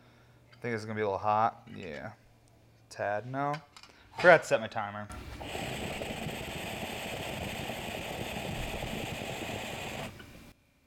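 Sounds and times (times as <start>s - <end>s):
speech: 0.6s - 2.2s, 2.9s - 5.8s
dab hit rumbling bubbly hiss: 5.1s - 10.3s.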